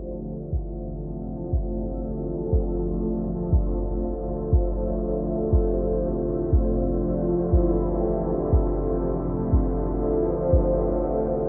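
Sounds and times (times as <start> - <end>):
scientifically designed relaxing music: 0.0 - 11.4.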